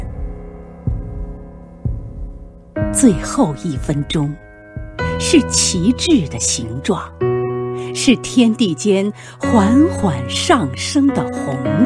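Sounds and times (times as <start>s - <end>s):
heartbeat sound effect thumps: 0.0s - 6.4s
speech: 2.9s - 4.4s, 5.2s - 7.2s, 7.9s - 11.8s.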